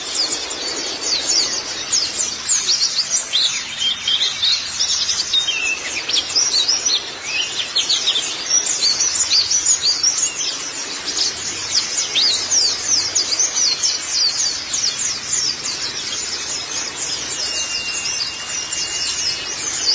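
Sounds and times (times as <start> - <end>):
White-eye song: 0.0 - 19.9
background hiss: 0.0 - 19.9.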